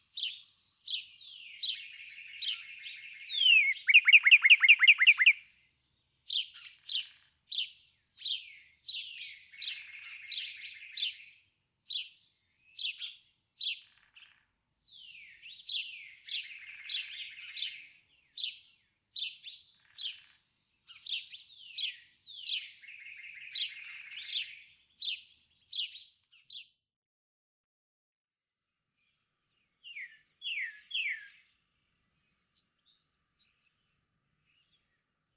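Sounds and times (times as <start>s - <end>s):
Northern Cardinal singing: 0.1s - 26.1s, 29.0s - 35.3s.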